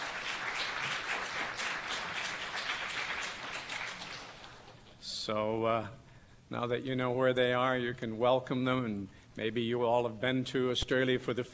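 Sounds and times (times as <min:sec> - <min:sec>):
church congregation applause: 0:00.0 - 0:04.9
speech: 0:05.3 - 0:11.5.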